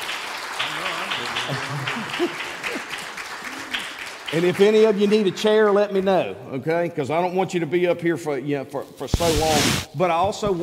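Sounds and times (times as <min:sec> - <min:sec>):
audience applause: 0:00.0 - 0:05.8
speech: 0:01.5 - 0:02.9, 0:04.3 - 0:10.6.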